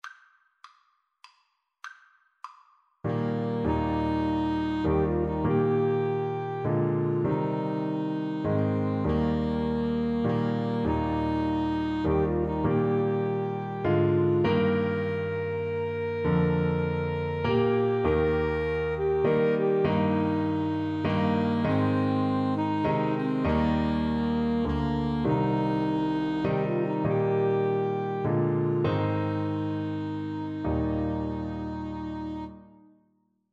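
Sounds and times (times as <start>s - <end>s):
alto saxophone playing a hymn: 3.1s - 32.9s.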